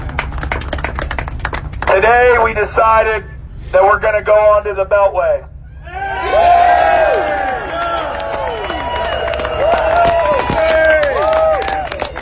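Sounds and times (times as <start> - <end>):
scattered claps: 0.0 - 2.0, 7.2 - 12.2
speech: 2.0 - 5.5
crowd cheering: 5.7 - 12.2.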